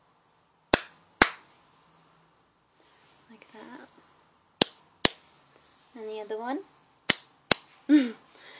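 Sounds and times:
hand slapping skin: 0.7 - 1.5, 4.6 - 5.3, 7.1 - 7.8
speech: 3.5 - 4.1, 6.0 - 6.7.

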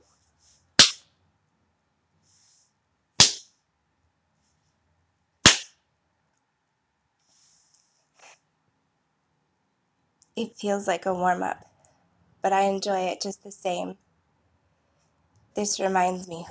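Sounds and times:
slow deliberate spanking slaps on skin: 0.8 - 1.0, 3.2 - 3.5, 5.5 - 5.7
speech: 10.4 - 11.7, 12.4 - 14.0, 15.6 - 16.4.

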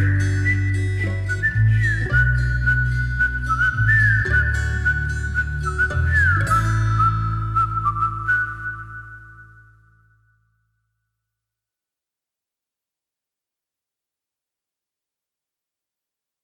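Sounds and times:
instrumental music: 0.0 - 10.3.

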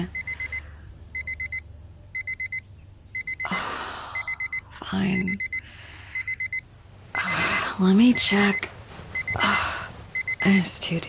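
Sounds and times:
speech: 0.0 - 0.2, 4.9 - 5.5, 7.8 - 8.7, 10.4 - 11.0
low steady hum: 0.0 - 11.0
phone alarm beeping: 0.0 - 11.0.

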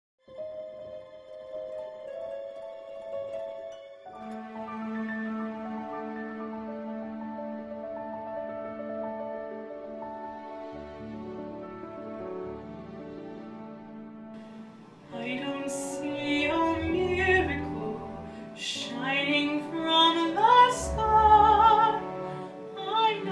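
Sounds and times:
woman singing musical theatre: 15.1 - 23.3.

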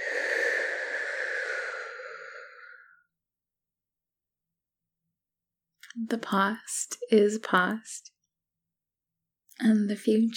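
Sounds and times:
slow breathy exhale during a guided relaxation exercise: 0.0 - 3.1
speech: 6.0 - 8.1, 9.6 - 10.3.

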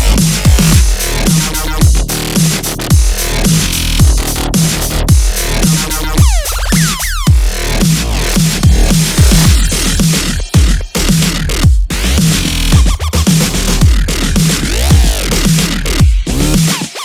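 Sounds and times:
raw metal: 0.0 - 16.6.

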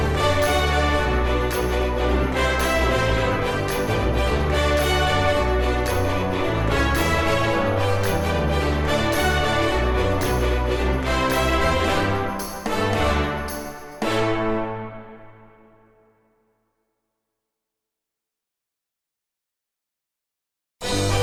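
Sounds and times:
instrumental orchestral remix music: 0.0 - 16.0, 20.8 - 21.2.

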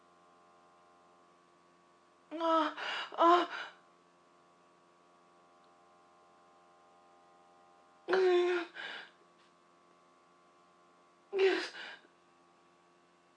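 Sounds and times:
person moaning: 2.3 - 3.8, 8.1 - 9.1, 11.4 - 12.0.

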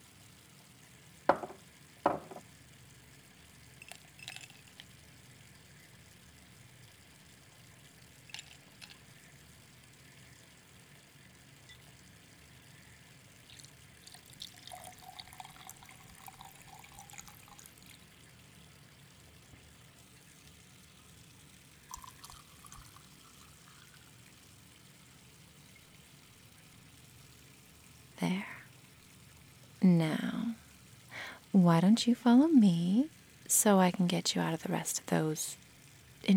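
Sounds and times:
drink pouring: 1.2 - 28.2
speech: 28.2 - 28.5, 29.8 - 30.4, 31.6 - 35.6.

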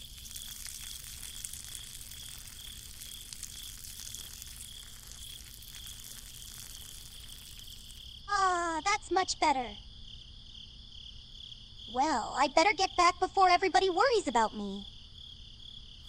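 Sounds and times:
person urinating: 0.0 - 8.2
speech: 9.1 - 9.9, 11.9 - 14.9.

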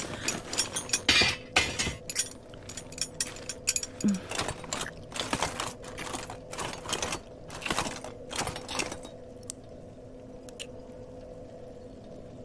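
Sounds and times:
metal armor clinking as it is removed: 0.0 - 9.2.

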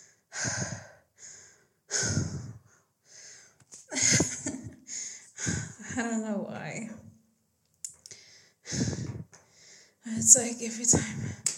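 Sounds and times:
heavy ragged breathing of a person catching their breath: 0.0 - 3.6, 4.8 - 6.0, 8.1 - 10.0
speech: 6.0 - 7.1, 10.2 - 11.4.

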